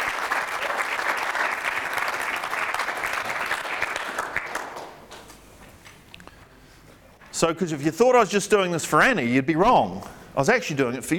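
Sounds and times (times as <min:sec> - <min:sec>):
audience clapping: 0:00.0 - 0:06.0
speech: 0:07.4 - 0:11.1.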